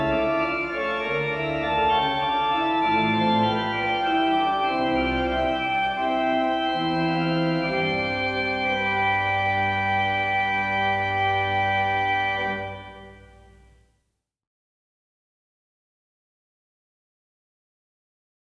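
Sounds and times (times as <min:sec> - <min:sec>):
organ music: 0:00.0 - 0:13.8.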